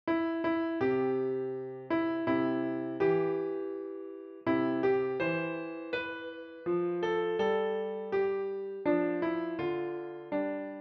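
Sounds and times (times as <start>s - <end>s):
piano: 0.1s - 10.7s.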